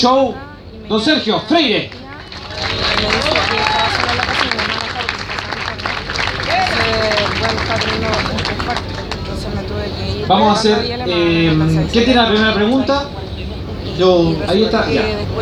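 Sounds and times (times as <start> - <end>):
speech: 0.0 - 4.6, 6.6 - 9.0, 9.9 - 13.2, 14.0 - 15.4
laughter: 0.4 - 15.4
applause: 1.6 - 13.2.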